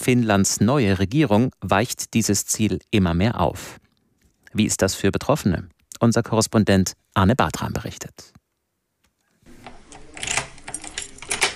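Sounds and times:
speech: 0.0s - 3.8s, 4.5s - 8.4s
apartment door being opened: 9.5s - 11.5s.

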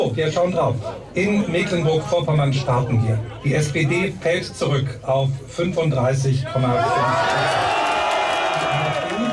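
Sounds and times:
speech: 0.0s - 7.8s
crowd cheering at an AfD election-night party by Lake Schwerin: 6.5s - 9.3s.

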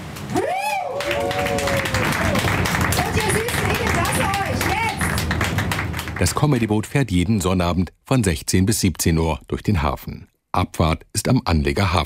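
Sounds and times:
audience applause: 0.0s - 7.0s
speech: 6.2s - 12.0s.

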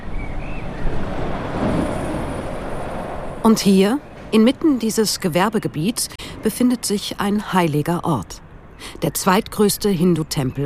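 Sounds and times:
truck rushing past on the street: 0.0s - 3.5s
speech: 3.4s - 10.6s.

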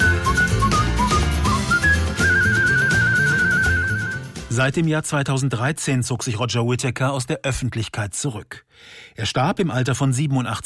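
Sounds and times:
person whistling a melody: 0.0s - 4.4s
full instrumental accompaniment: 0.0s - 4.6s
speech: 4.6s - 10.6s.

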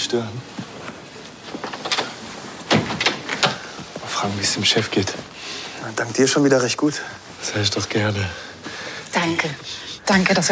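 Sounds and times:
speech: 0.0s - 0.6s, 4.2s - 8.5s, 9.2s - 10.5s
door opening: 1.4s - 3.8s.

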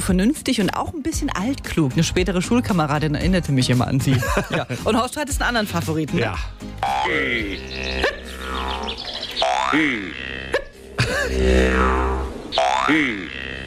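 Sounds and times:
speech: 0.0s - 9.0s, 9.7s - 10.3s, 11.2s - 13.4s
laughter: 4.0s - 5.1s, 11.0s - 11.5s
jaw harp boing sound effect: 6.8s - 13.6s.

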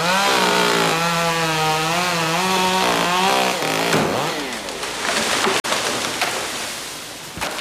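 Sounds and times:
chainsaws cutting trees: 0.0s - 5.2s
trees crashing into the undergrowth: 0.0s - 7.5s.

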